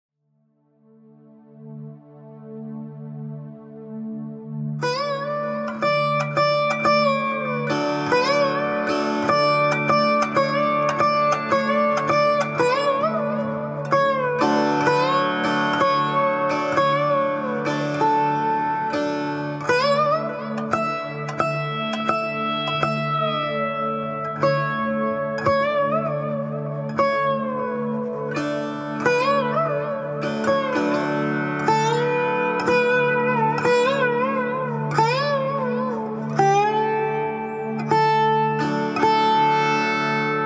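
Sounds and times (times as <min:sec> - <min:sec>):
sitar playing a daramad: 0:04.8 - 0:40.4.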